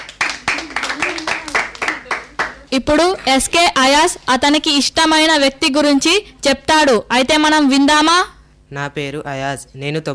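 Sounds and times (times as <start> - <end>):
audience rhythmic hand claps at a school event: 0.0 - 4.4
speech: 2.7 - 10.1.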